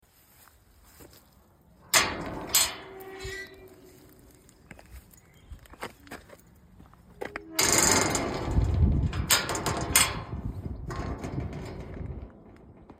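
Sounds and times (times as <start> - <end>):
old gate: 1.8 - 4.6, 7.2 - 12.9.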